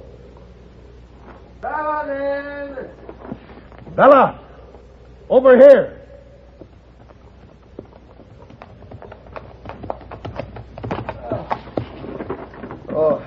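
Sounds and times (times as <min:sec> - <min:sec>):
speech: 0:04.0 - 0:04.4, 0:05.3 - 0:06.0
horse hooves clip-clopping as a rider arrives: 0:06.5 - 0:13.2.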